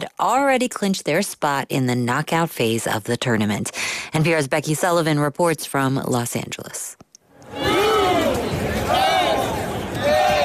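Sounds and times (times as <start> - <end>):
speech: 0.0 - 7.6
rowdy stadium crowd at soccer match in Southern California: 7.4 - 10.4.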